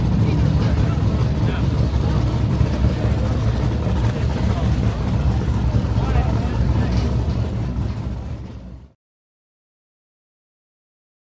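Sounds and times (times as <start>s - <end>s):
offshore power boat race ambience: 0.0s - 9.0s.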